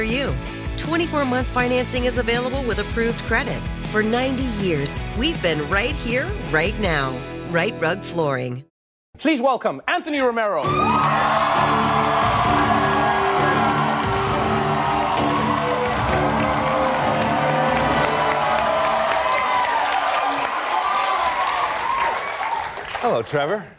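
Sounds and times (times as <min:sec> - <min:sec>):
speech: 0:00.0 - 0:11.8, 0:23.0 - 0:23.7
crowd applauding: 0:10.7 - 0:23.7.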